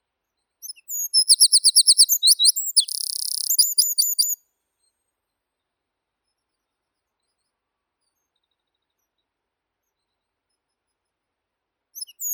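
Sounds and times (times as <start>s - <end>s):
wren Troglodytes troglodytes: 0.6s - 4.4s.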